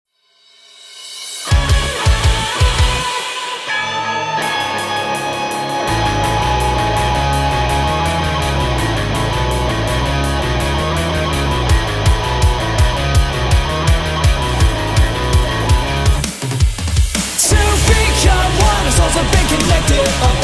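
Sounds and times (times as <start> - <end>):
English cover song: 1.4 - 20.4.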